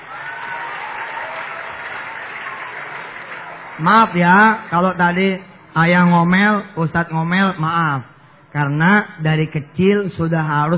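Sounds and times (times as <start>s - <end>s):
audience applause for a child at a preacher's gathering: 0.0s - 4.7s
speech: 3.8s - 10.7s.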